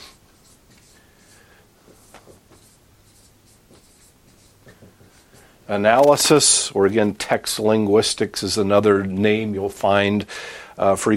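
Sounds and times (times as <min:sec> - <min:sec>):
lecturer writing words on a board: 0:00.0 - 0:05.5
speech: 0:05.7 - 0:11.1.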